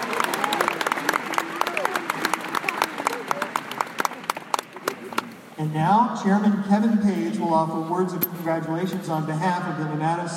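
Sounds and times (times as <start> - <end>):
audience applause for faculty: 0.0 - 5.4
speech: 5.6 - 10.3.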